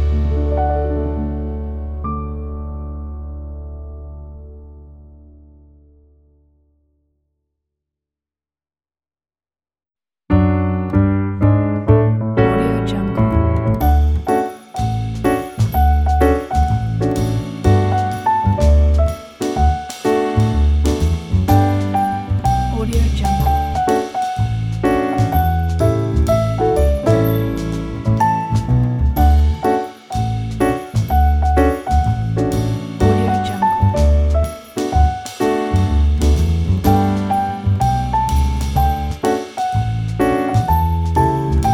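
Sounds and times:
Christmas jazz trio playing: 0:00.0 - 0:02.0, 0:11.0 - 0:41.7.

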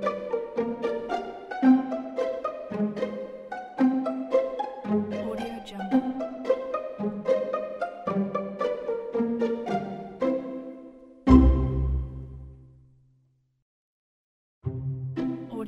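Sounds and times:
silly sneaky comedy music: 0:00.0 - 0:12.5.

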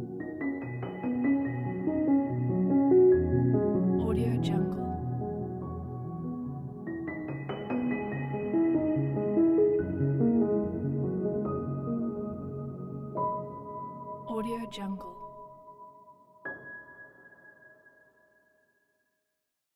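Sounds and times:
ambient piano music for a documentary: 0:00.0 - 0:18.7.

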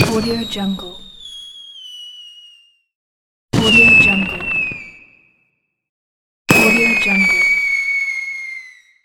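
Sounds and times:
fireworks whistling: 0:00.0 - 0:02.9, 0:03.6 - 0:05.4, 0:06.5 - 0:09.0.

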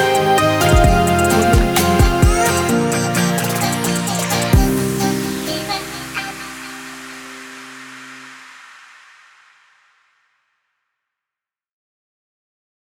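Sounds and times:
melodic emotional romantic hip hop music: 0:00.0 - 0:08.9.

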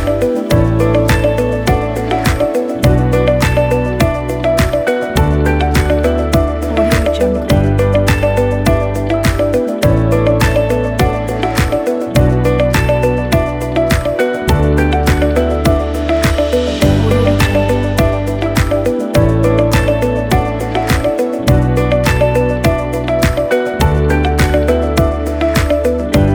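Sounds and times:
luxury motivational corporate music: 0:00.0 - 0:26.3.

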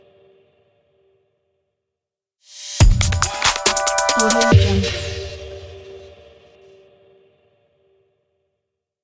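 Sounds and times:
podcast opener logo jingle: 0:02.5 - 0:06.3.

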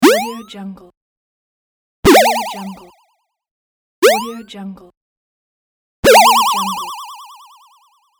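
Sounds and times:
retro jump sound: 0:00.0 - 0:00.4, 0:02.1 - 0:03.0, 0:04.0 - 0:04.5, 0:06.0 - 0:07.9.

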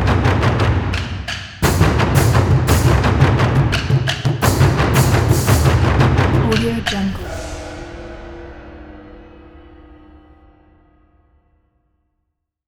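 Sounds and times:
taiko drums: 0:00.0 - 0:07.5.

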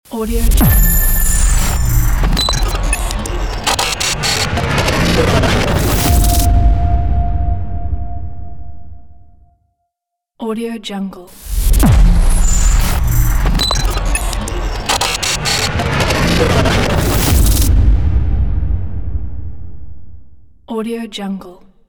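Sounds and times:
glitch interface technology logo ident: 0:00.3 - 0:09.2, 0:11.4 - 0:19.7.

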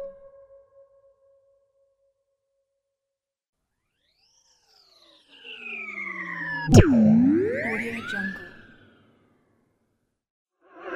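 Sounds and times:
cartoon sound effects: 0:06.7 - 0:08.8.

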